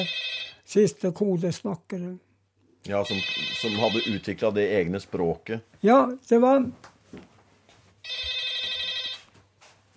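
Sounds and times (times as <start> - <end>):
telephone ringing: 0.0 - 0.7, 3.0 - 4.4, 8.0 - 9.3
speech: 0.0 - 7.3.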